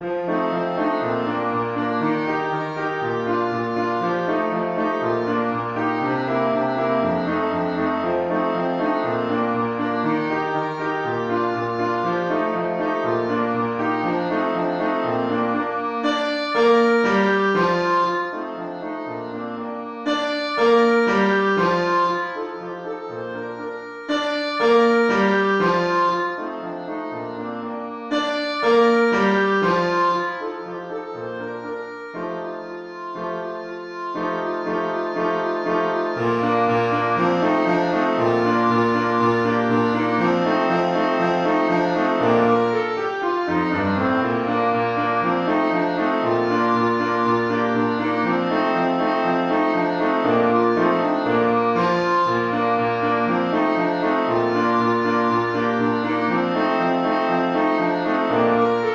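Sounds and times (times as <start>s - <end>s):
clarinet: 0.0s - 58.9s.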